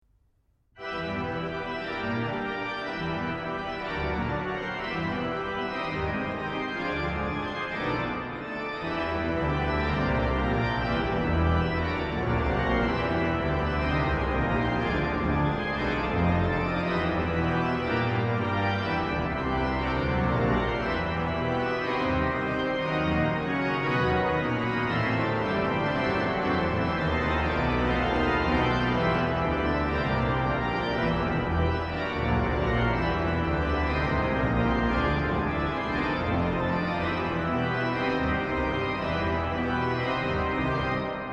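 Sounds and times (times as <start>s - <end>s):
organ sonata in E: 0.8s - 41.3s.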